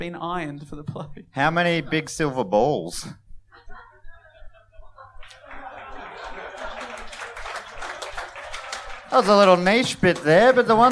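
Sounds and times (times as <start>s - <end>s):
speech: 0.0s - 3.2s, 9.1s - 10.8s
laughter: 3.5s - 10.8s
scattered smattering of audience applause: 5.2s - 10.8s.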